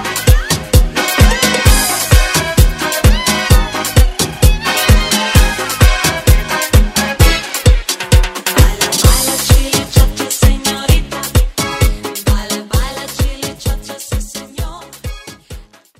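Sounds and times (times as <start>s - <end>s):
Afrobeat music: 0.0s - 15.9s.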